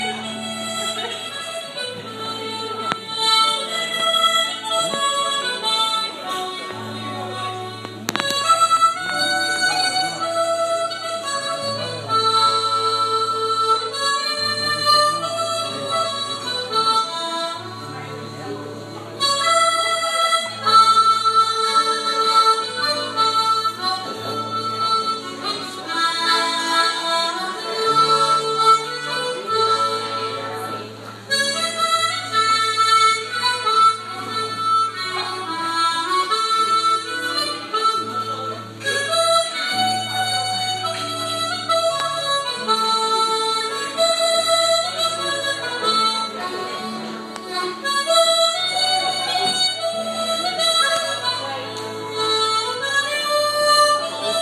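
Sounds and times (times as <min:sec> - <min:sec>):
music: 0:00.0 - 0:54.3.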